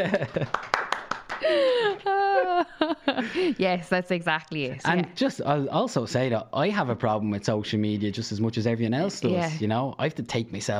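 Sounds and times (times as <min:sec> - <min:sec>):
laughter: 0:00.0 - 0:00.7, 0:01.4 - 0:03.6
speech: 0:00.0 - 0:00.7, 0:01.4 - 0:10.7
audience clapping: 0:00.0 - 0:02.1.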